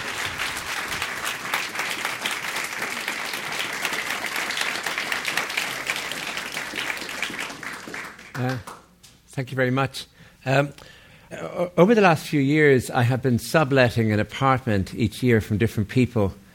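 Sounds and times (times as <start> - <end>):
audience applause at a JCC welcoming an award-winning author: 0.0 - 8.8
speech: 8.4 - 8.8, 9.4 - 16.4.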